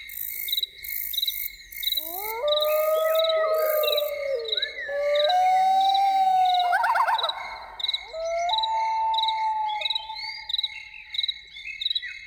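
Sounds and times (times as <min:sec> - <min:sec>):
insects pulsing: 0:02.0 - 0:11.0
loon calling: 0:02.0 - 0:11.1.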